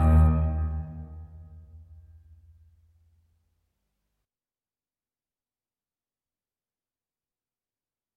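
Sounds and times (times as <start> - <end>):
double bass: 0.0 - 1.7.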